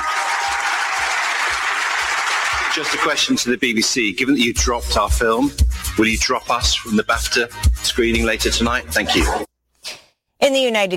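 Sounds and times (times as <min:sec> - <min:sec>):
audience applause for journalists at an award ceremony: 0:00.0 - 0:03.4
speech: 0:02.7 - 0:09.5, 0:10.4 - 0:10.9.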